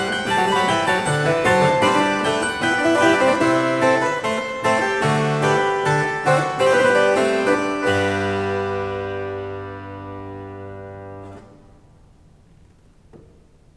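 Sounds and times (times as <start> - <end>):
harpsichord playing a fughetta: 0.0 - 11.6.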